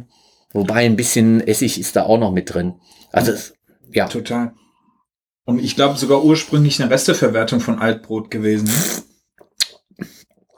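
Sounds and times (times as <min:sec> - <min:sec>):
speech: 0:00.0 - 0:04.6, 0:05.5 - 0:09.0
person slurping a drink while tasting: 0:08.6 - 0:10.5.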